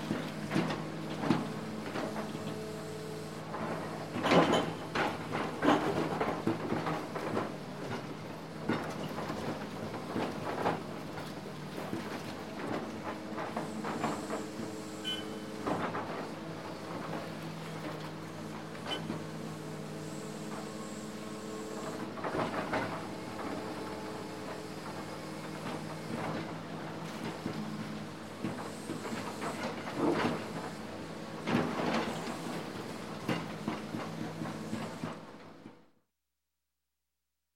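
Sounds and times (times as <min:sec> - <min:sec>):
bulldozer working around a construction site: 0:00.0 - 0:35.9.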